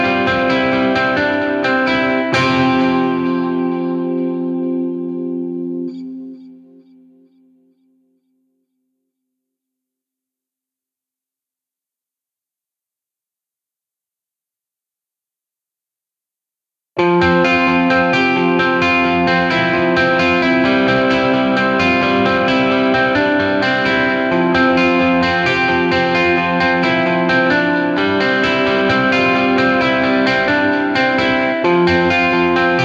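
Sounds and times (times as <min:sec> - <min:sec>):
guitar: 0:00.0 - 0:08.2, 0:17.0 - 0:32.8.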